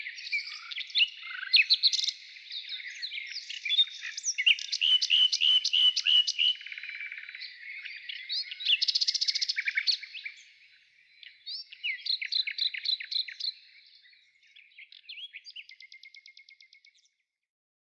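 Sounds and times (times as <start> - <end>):
nightingale singing in the morning: 0.0 - 17.1.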